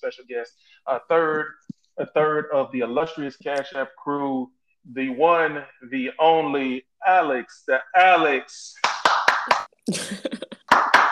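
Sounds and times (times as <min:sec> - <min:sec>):
speech: 0:00.0 - 0:10.5
hand clapping: 0:08.8 - 0:09.7, 0:10.5 - 0:11.0.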